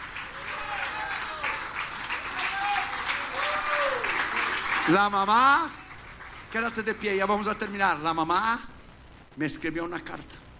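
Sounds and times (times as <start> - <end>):
audience applauding: 0.0 - 7.1
speech: 4.9 - 5.8, 6.5 - 8.7, 9.4 - 10.4.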